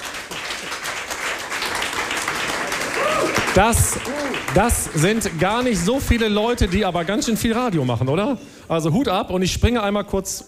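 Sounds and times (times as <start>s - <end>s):
audience applause: 0.0s - 8.2s
speech: 3.6s - 10.4s.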